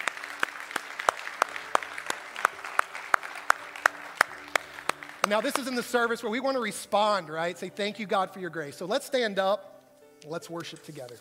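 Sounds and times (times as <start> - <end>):
audience applauding: 0.0 - 6.7
speech: 5.3 - 11.1.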